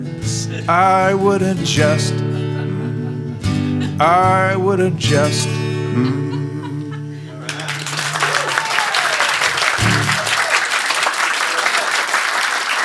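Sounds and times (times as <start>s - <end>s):
speech: 0.5s - 2.3s, 4.0s - 6.3s
laughter: 2.3s - 4.0s, 5.9s - 12.8s
audience applause: 7.4s - 12.8s.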